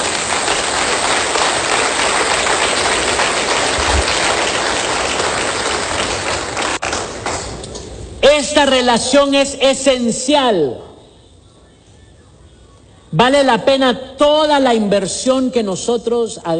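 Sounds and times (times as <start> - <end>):
audience applause: 0.0 - 7.5
speech: 8.6 - 10.9, 13.1 - 16.5.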